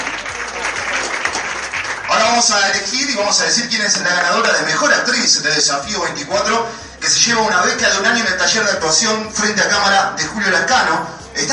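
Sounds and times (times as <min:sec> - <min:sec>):
loud audience applause: 0:00.0 - 0:03.2
speech: 0:02.3 - 0:11.5.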